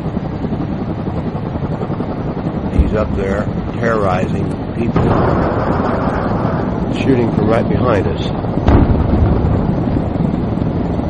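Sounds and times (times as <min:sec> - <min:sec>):
helicopter flying very close overhead: 0:00.0 - 0:11.0
speech: 0:02.9 - 0:06.0, 0:07.0 - 0:08.4.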